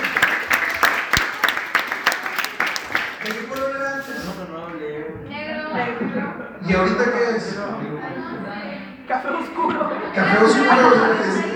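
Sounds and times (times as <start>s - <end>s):
applause: 0.0s - 4.0s
speech: 6.1s - 11.5s
laughter: 9.1s - 11.5s.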